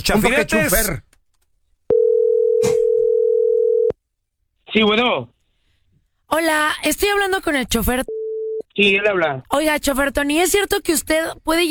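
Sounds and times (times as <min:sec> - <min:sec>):
speech: 0:00.0 - 0:01.1, 0:04.7 - 0:05.4, 0:06.3 - 0:08.2, 0:08.8 - 0:11.6
telephone dial tone before a call: 0:01.9 - 0:04.0.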